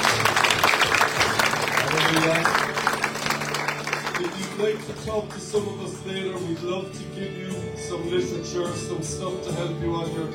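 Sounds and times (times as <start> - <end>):
audience applause: 0.0 - 5.4
speech: 4.6 - 10.3.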